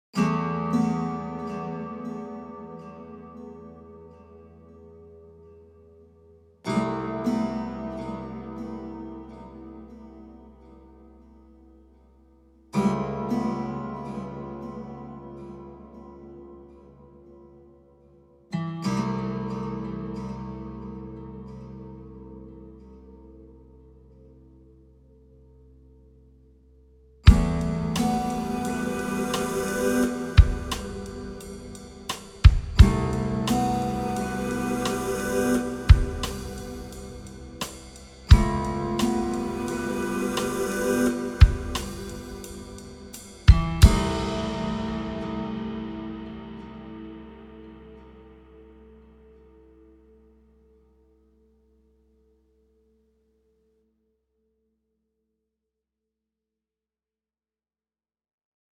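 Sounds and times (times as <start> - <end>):
acoustic music: 0.2 - 51.2.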